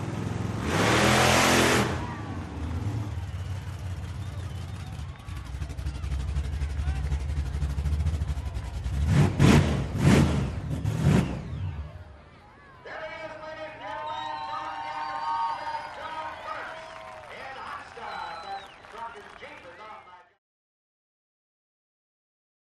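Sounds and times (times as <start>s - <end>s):
monster truck starting up, idling, revving and driving away: 0.0s - 12.2s
crowd cheering: 0.9s - 10.2s, 10.8s - 20.4s
public address announcement: 12.3s - 20.4s.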